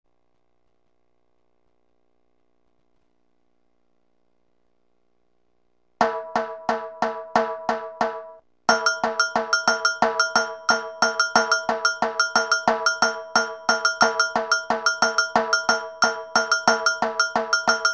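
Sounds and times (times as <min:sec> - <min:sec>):
rhythm: 0:06.0 - 0:17.9.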